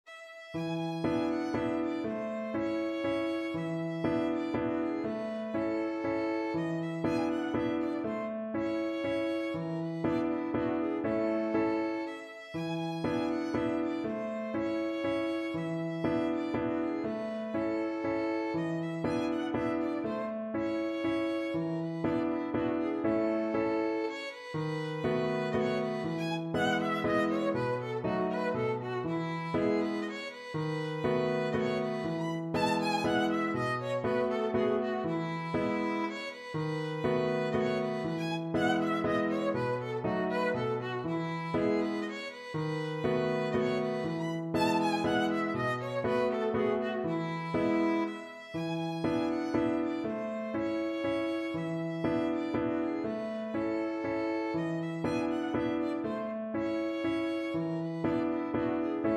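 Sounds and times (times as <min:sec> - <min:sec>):
waltz on violin: 0:00.0 - 0:59.1.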